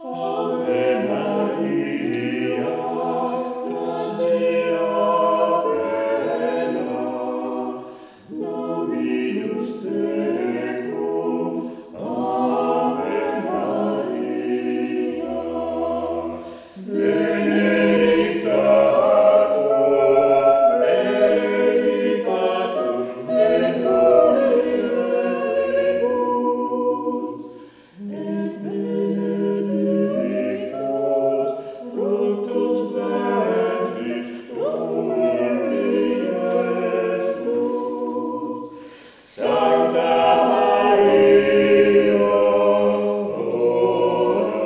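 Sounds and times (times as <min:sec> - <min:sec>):
sacred music piece: 0:00.0 - 0:44.6.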